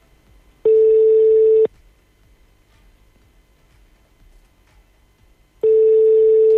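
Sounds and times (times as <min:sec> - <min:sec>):
phone line beeps on a call that fails to connect: 0:00.7 - 0:01.7, 0:05.6 - 0:06.5.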